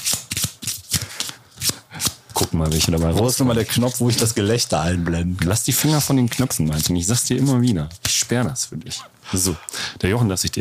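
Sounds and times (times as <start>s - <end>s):
playing cards being spread out on the floor: 0.0s - 4.4s, 5.7s - 8.2s
speech: 2.5s - 10.6s.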